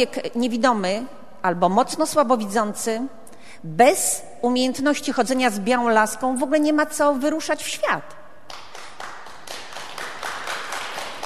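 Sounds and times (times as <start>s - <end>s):
speech: 0.0s - 8.2s
audience clapping: 8.5s - 11.2s.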